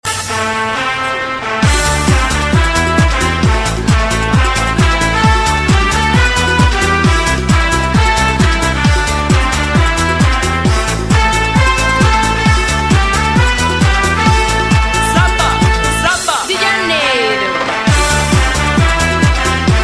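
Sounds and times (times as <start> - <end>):
samba music: 0.0 - 19.8.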